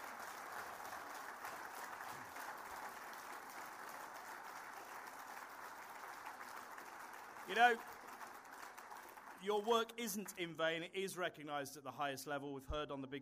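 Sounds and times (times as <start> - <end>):
audience round of applause: 0.0 - 10.5
speech: 7.5 - 8.0, 9.4 - 13.1.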